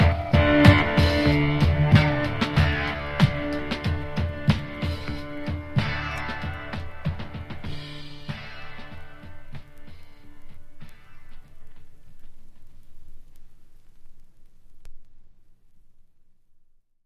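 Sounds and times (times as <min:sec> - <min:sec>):
drums playing: 0:00.0 - 0:12.7.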